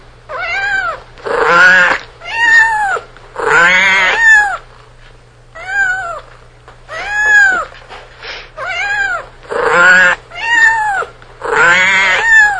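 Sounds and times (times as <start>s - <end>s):
faint low hum: 0.0s - 12.5s
cat meowing: 0.3s - 4.6s, 5.6s - 6.3s, 6.9s - 7.8s, 8.6s - 12.5s.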